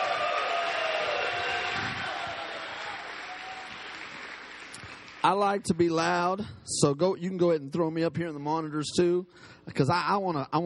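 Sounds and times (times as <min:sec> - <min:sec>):
audience clapping: 0:00.0 - 0:05.8
speech: 0:05.2 - 0:10.6.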